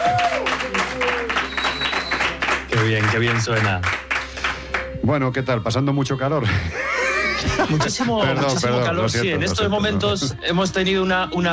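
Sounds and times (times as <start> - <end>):
applause: 0.0 - 5.0
speech: 2.8 - 4.0, 5.0 - 11.5
laughter: 6.4 - 10.4.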